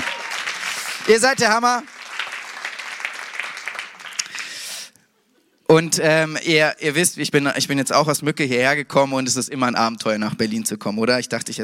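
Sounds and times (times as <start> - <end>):
audience applause: 0.0 - 4.7
speech: 1.1 - 1.9, 5.7 - 11.6.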